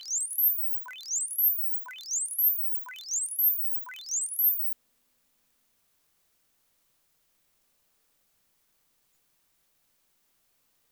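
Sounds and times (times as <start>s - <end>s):
bats: 0.0s - 4.8s.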